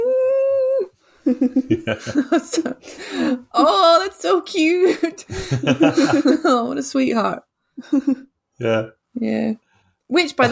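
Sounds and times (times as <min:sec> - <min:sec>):
person imitating little whines: 0:00.0 - 0:00.9
laughter: 0:01.3 - 0:03.5, 0:04.8 - 0:06.7
speech: 0:01.3 - 0:10.5.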